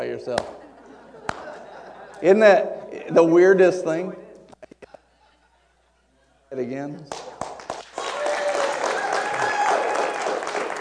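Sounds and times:
speech: 0.2s - 0.7s, 2.2s - 4.2s, 6.5s - 7.2s
hand clapping: 0.3s - 0.6s, 1.2s - 1.5s, 7.1s - 10.7s
laughter: 0.3s - 3.2s.

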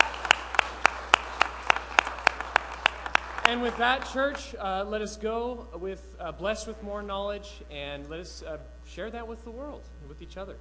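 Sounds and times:
audience applause: 0.0s - 4.5s
speech: 3.5s - 10.5s.

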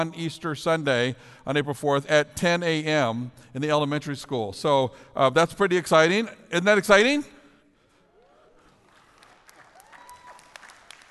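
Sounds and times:
speech: 0.0s - 7.4s
group clapping: 8.1s - 11.0s.

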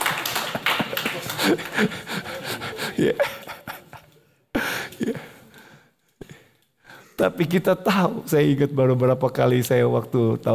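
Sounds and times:
audience clapping: 0.0s - 3.6s
laughter: 0.0s - 5.5s
speech: 1.2s - 3.5s, 7.2s - 10.5s.

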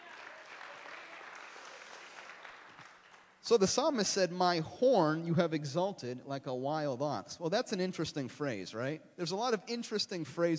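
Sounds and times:
audience clapping hands: 0.0s - 3.4s
speech: 3.4s - 10.5s.

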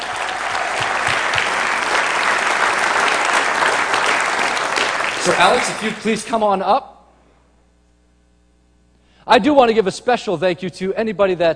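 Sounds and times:
audience applauding: 0.0s - 6.4s
speech: 5.2s - 6.9s, 9.3s - 11.5s.

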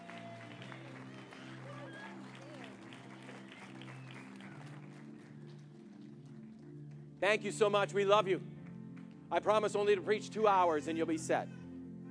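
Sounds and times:
audience clapping hands: 0.0s - 7.7s
speech: 7.2s - 8.5s, 9.3s - 11.6s.

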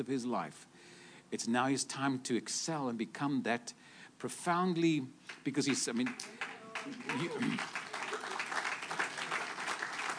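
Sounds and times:
speech: 0.0s - 7.8s
audience clapping: 5.3s - 10.1s.

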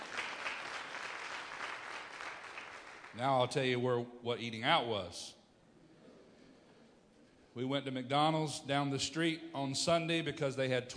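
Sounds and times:
audience clapping: 0.0s - 3.3s
speech: 3.2s - 5.4s, 7.6s - 10.9s.

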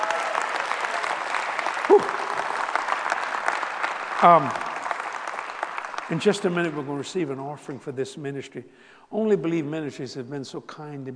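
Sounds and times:
audience hand clapping: 0.0s - 7.4s
speech: 4.2s - 4.6s, 6.1s - 11.1s.

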